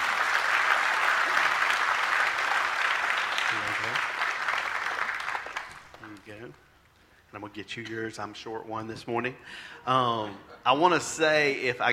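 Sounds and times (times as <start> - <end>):
crowd applause: 0.0 - 6.2
speech: 6.4 - 6.7, 7.3 - 11.9.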